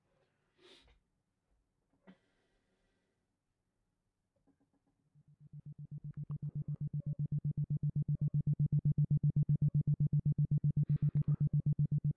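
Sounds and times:
isochronic tone pulsing at about 8 Hz: 5.1 - 12.1.

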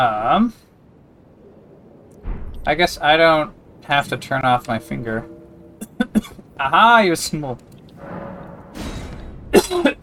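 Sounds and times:
speech: 0.0 - 0.7, 2.6 - 5.3, 5.9 - 7.7
harsh coughs: 9.5 - 10.0.

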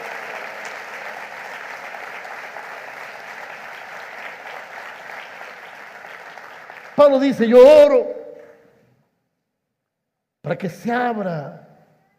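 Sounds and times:
audience applauding loudly: 0.0 - 8.7
speech: 7.0 - 8.2, 10.5 - 11.6.

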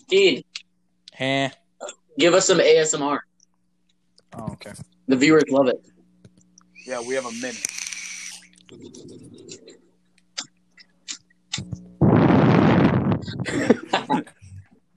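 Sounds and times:
speech: 0.0 - 0.5, 1.2 - 3.3, 4.3 - 6.0, 6.8 - 7.8, 8.7 - 9.5
fart: 11.6 - 13.3
laughter: 13.2 - 14.6.

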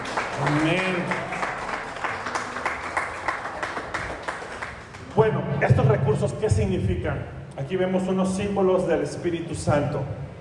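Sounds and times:
audience applause: 0.0 - 5.1
speech: 0.4 - 1.3, 6.2 - 10.2.

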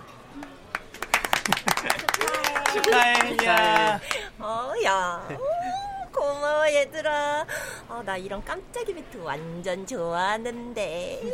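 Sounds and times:
restaurant guests applauding: 0.4 - 4.3
laughter: 1.2 - 4.3
speech: 1.5 - 5.4, 6.6 - 11.3.

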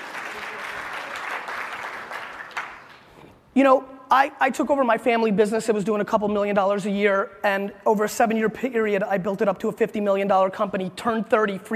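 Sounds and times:
audience applause: 0.0 - 3.1
speech: 3.6 - 11.7.

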